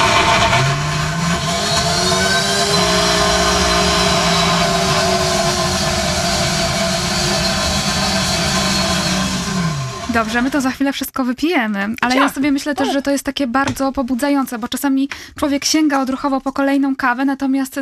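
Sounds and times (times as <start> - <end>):
blender blending fruit: 0.0 - 10.7
speech: 10.2 - 17.8.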